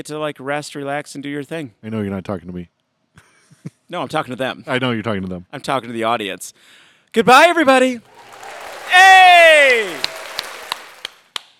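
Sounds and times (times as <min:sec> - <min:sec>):
speech: 0:00.0 - 0:03.3, 0:03.9 - 0:10.1
sharp crisp claps: 0:07.6 - 0:11.5.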